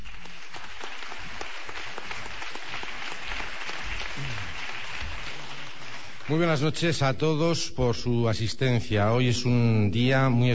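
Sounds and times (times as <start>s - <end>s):
audience applause: 0.0s - 6.8s
speech: 6.3s - 10.5s.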